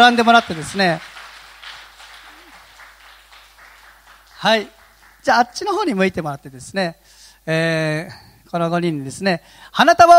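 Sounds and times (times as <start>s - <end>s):
speech: 0.0s - 1.1s, 4.4s - 10.1s
audience applause for five people called to the front after their baptism: 0.0s - 6.2s.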